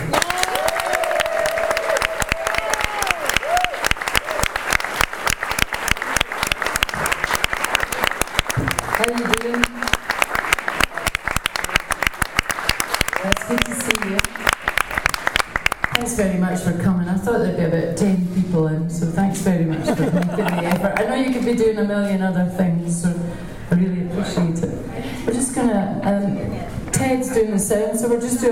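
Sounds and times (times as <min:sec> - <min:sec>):
audience applause welcoming a singer onto a concert stage in Chicago: 0:00.0 - 0:16.0, 0:20.2 - 0:21.1
speech: 0:16.2 - 0:20.6, 0:21.2 - 0:24.4, 0:25.6 - 0:28.4
laughter: 0:19.7 - 0:21.2.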